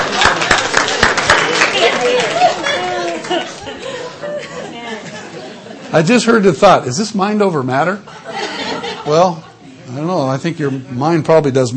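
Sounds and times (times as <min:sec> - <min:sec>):
audience clapping during a Christian sermon: 0:00.0 - 0:03.8
crowd chatter: 0:00.0 - 0:11.7
laughter: 0:01.5 - 0:06.4, 0:08.0 - 0:09.9
speech: 0:05.9 - 0:08.2, 0:09.0 - 0:11.7.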